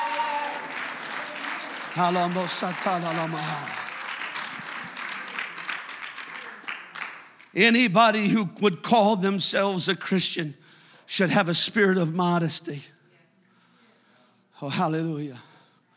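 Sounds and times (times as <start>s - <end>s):
loud raised voices shouting and calling out: 0.0s - 0.7s
crowd clapping: 0.0s - 8.2s
speech: 2.0s - 3.8s, 7.6s - 12.9s, 14.6s - 15.5s.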